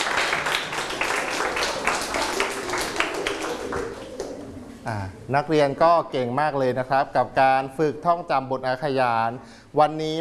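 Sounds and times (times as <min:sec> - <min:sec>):
classroom of students applauding: 0:00.0 - 0:04.7
speech: 0:04.9 - 0:10.1.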